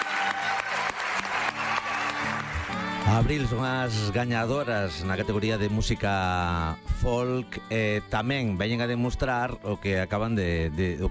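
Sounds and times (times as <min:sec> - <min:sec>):
audience applause: 0:00.0 - 0:03.6
speech: 0:03.1 - 0:11.1.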